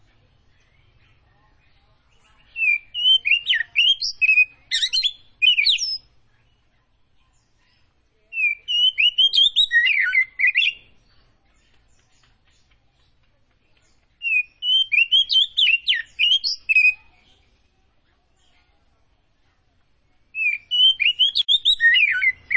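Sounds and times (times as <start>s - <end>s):
Oriental magpie-robin song: 0.0s - 22.5s.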